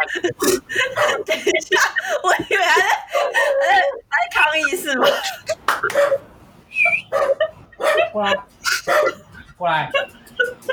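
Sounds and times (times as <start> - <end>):
laughter: 0.0 - 4.1, 6.9 - 10.7
speech: 0.1 - 3.0, 4.9 - 5.4
dog barking: 0.9 - 1.3, 5.9 - 6.2, 7.1 - 9.3.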